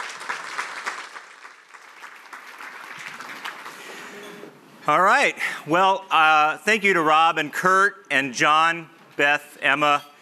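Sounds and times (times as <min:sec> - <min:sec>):
audience applauding at a professional chapter event in Chicago: 0:00.0 - 0:04.3
speech: 0:04.9 - 0:10.1.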